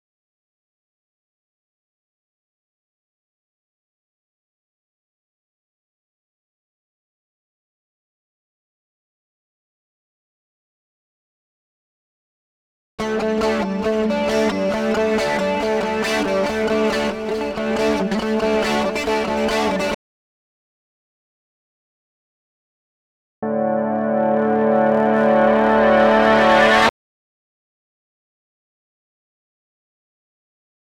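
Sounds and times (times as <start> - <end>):
electric guitar through a boost effect: 13.0 - 20.0, 23.4 - 26.9.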